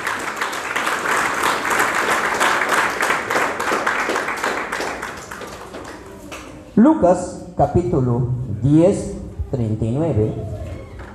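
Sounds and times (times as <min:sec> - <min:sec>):
church congregation applauding: 0:00.0 - 0:06.6
speech: 0:06.8 - 0:10.6.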